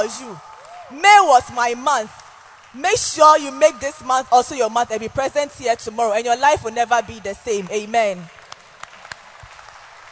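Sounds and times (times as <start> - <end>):
audience clapping: 0.0 - 0.9, 1.9 - 2.8, 7.5 - 10.1
speech: 0.0 - 8.4.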